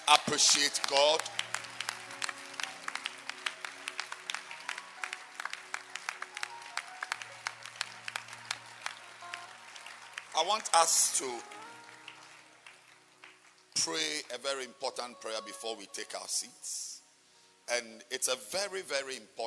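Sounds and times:
audience clapping hands: 0.0 - 15.1
speech: 0.1 - 1.5, 10.4 - 11.6, 13.8 - 16.9, 17.7 - 19.4.

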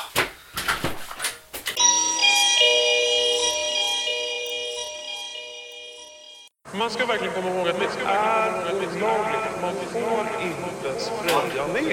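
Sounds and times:
doorbell ringing: 1.8 - 6.6
speech: 6.8 - 11.9.

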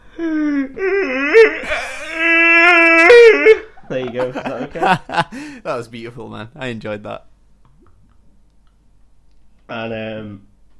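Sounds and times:
speech: 0.2 - 1.0, 4.1 - 7.3, 9.7 - 10.5
person vocally imitating a dying seagull: 1.0 - 3.5
laughter: 3.9 - 5.5.

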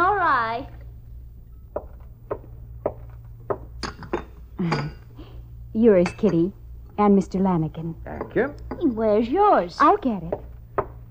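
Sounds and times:
low steady hum: 0.0 - 11.1
cups and dishes clinking: 3.5 - 6.6, 8.0 - 9.0
speech: 4.6 - 5.0, 5.8 - 10.4.

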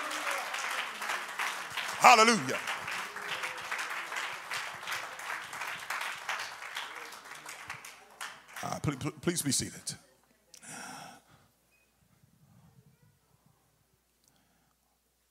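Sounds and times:
crowd clapping: 0.0 - 9.7
speech: 2.0 - 2.7, 8.8 - 10.1.

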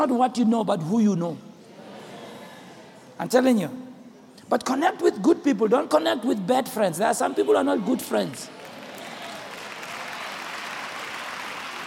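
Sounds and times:
speech: 0.0 - 1.5, 3.2 - 3.9, 4.5 - 8.6
audience hand clapping: 8.3 - 11.8.

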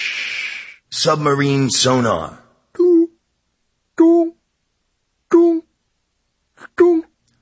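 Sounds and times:
speech: 1.0 - 2.4
voice imitating a tsunami with rushing hiss and wail: 5.3 - 5.7, 6.6 - 7.2.

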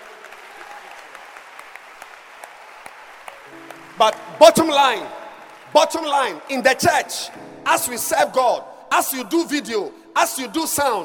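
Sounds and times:
audience applauding: 0.0 - 6.9
speech: 4.0 - 11.0.

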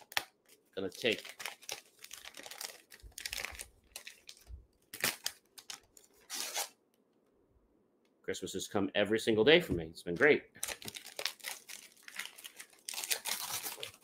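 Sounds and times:
wrapping paper on a holiday gift crinkling and tearing: 0.0 - 6.8, 10.6 - 14.0
speech: 0.8 - 1.4, 8.3 - 11.0.

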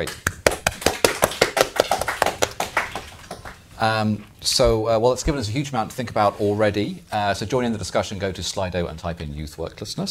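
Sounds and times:
speech: 0.0 - 0.3, 3.8 - 10.0
round of applause: 0.0 - 3.6.

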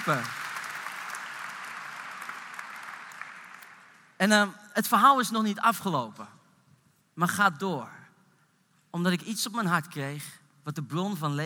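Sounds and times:
speech: 0.0 - 0.4, 4.2 - 6.3, 7.2 - 8.0, 8.9 - 11.4
audience applause: 0.0 - 4.2.

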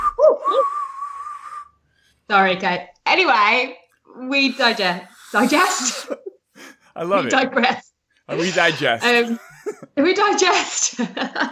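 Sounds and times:
failed attempt at whistling: 0.0 - 1.9
speech: 2.3 - 11.5
laughter: 5.4 - 7.4, 8.3 - 10.1, 10.8 - 11.5.

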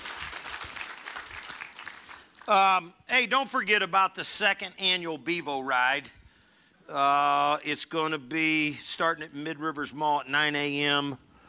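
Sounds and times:
audience applauding: 0.0 - 2.5
speech: 2.5 - 6.2, 6.9 - 11.2.

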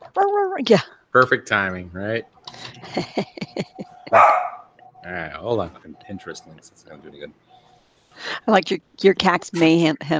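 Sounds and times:
speech: 0.2 - 7.5, 8.2 - 10.1
laughter: 2.5 - 4.2
dog barking: 4.1 - 4.7.

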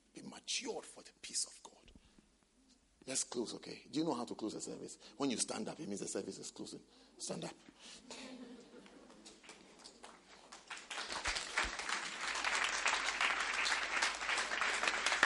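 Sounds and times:
speech: 0.5 - 1.8, 3.1 - 8.4
laughter: 8.0 - 9.4
audience clapping: 8.8 - 15.2.

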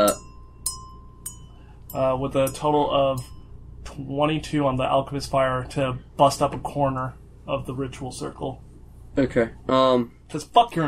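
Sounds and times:
guard bell ringing: 0.0 - 4.0
speech: 1.9 - 3.4, 4.0 - 10.8.

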